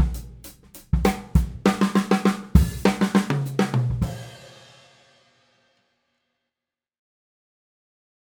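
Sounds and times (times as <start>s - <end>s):
5x14 Slingerland TDR snare drum from the 1970s: 0.0s - 4.7s.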